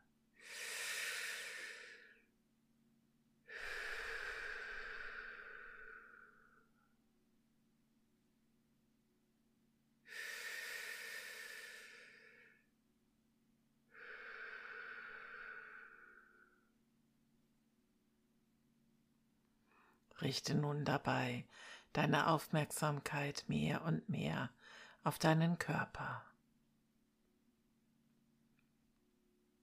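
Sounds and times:
deep forceful breaths: 3.5 - 6.8, 10.1 - 12.6, 13.9 - 16.7
speech: 20.2 - 26.3.

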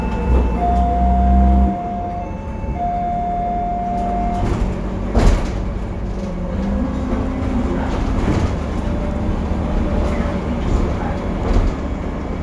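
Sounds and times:
whining tone: 0.0 - 5.4
BredaMenarinibus Avancity+ CNG bus engine in Istanbul: 0.0 - 12.4
sharp knocks and door-like thuds: 3.9 - 5.7.

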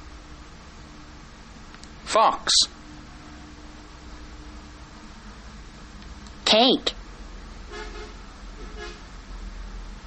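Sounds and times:
speech: 2.1 - 2.8, 6.5 - 7.0
bus horn honking: 7.7 - 9.2.

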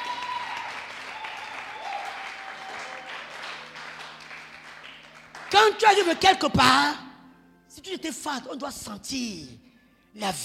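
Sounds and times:
church congregation applause: 0.0 - 6.2
speech: 5.5 - 7.0, 7.8 - 10.4.

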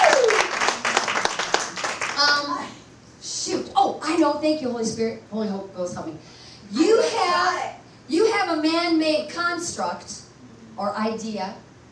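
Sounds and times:
audience applause: 0.0 - 2.2
speech: 4.2 - 10.2, 10.8 - 11.6.

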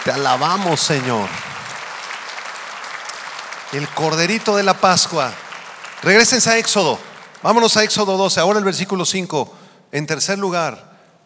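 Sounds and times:
audience applause: 0.0 - 8.0
speech: 0.1 - 1.6, 3.7 - 10.9.

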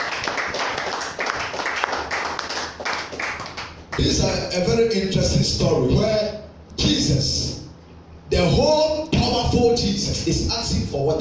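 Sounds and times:
crowd clapping hands: 0.0 - 4.1
speech: 4.0 - 6.3, 7.1 - 7.6, 8.4 - 8.9, 9.7 - 11.1.

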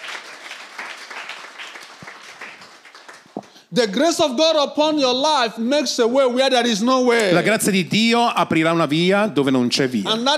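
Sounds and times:
audience applause: 0.0 - 3.6
speech: 3.7 - 10.3.

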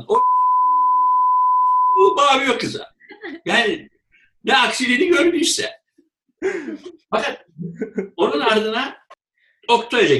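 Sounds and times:
censor bleep tone: 0.1 - 2.2
speech: 2.2 - 5.8, 6.4 - 9.0, 9.7 - 10.1.

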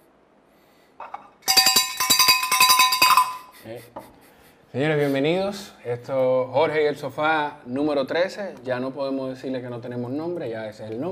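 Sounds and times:
hand bell ringing: 1.4 - 3.6
speech: 3.6 - 11.1.

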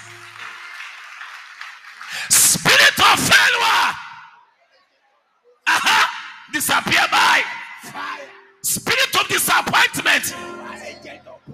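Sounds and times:
audience clapping: 0.0 - 3.0
speech: 2.1 - 4.0, 6.6 - 11.3.

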